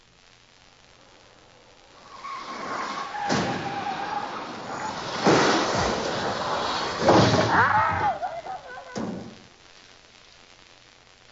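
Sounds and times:
car leaking brake fluid roaring at speed along a foggy country road: 0.8s - 9.5s
car tires squealing in a skid on a curve: 1.9s - 9.4s
car crashing head-on into a large roadside tree: 2.0s - 9.5s.

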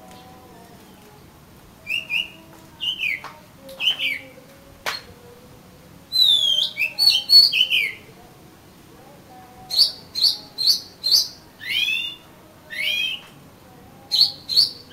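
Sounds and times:
Oriental magpie-robin song: 1.8s - 4.3s, 6.1s - 8.1s, 9.7s - 13.3s, 14.1s - 14.9s.

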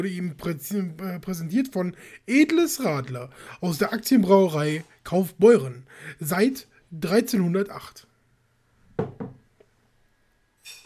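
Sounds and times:
speech: 0.0s - 8.1s
faint tap: 9.0s - 9.7s
glasses clinking in a toast: 10.6s - 10.8s.

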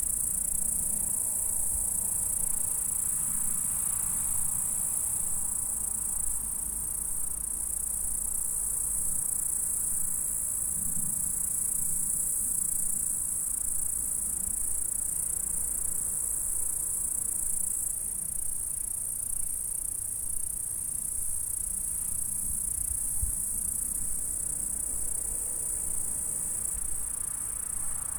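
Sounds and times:
insect stridulation: 0.0s - 28.1s.

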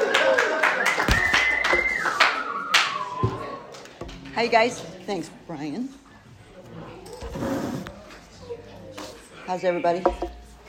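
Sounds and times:
audience round of applause: 0.0s - 3.6s
speech: 4.4s - 6.0s, 9.5s - 10.3s.

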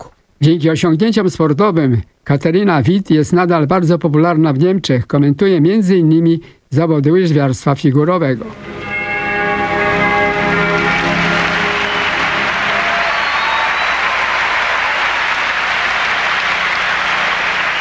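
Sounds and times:
speech: 0.4s - 8.9s
sustained ringing tone: 8.5s - 14.0s
crowd applause: 8.7s - 17.8s.

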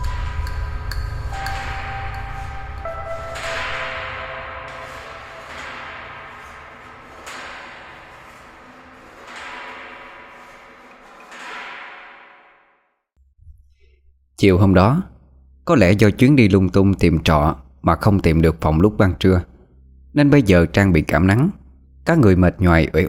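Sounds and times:
faint piano notes plinking: 0.0s - 8.4s
speech: 14.4s - 15.1s, 15.7s - 19.5s, 20.2s - 23.0s.

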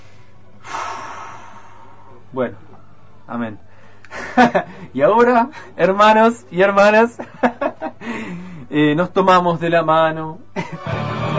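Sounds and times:
deep breath: 0.0s - 2.3s, 8.0s - 8.7s
speech: 2.3s - 3.7s, 4.4s - 11.2s.

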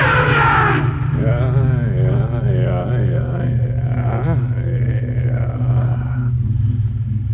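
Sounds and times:
elephant trumpeting: 0.0s - 1.2s
steady deep rumble: 0.0s - 7.3s.

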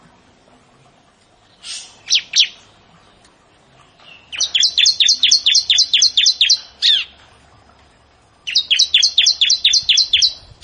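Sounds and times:
bar-winged prinia song of bright high chirps: 1.4s - 7.2s, 8.4s - 10.6s.

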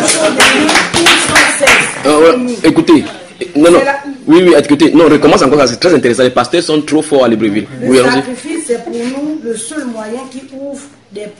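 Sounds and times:
audience applause: 0.0s - 1.8s
speech: 2.0s - 11.3s.

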